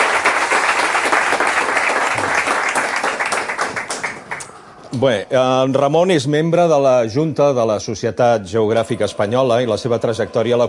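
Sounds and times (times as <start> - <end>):
audience applause: 0.0 - 4.6
speech: 4.9 - 10.6.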